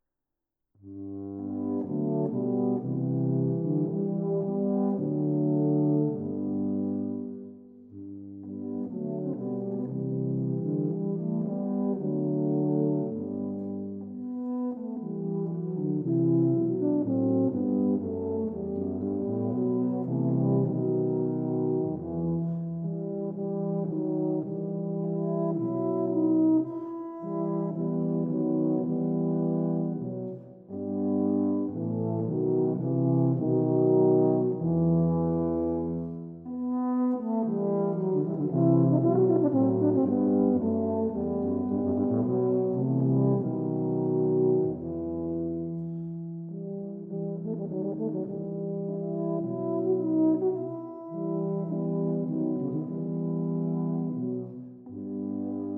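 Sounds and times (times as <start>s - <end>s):
tuba trio: 0.8s - 55.7s.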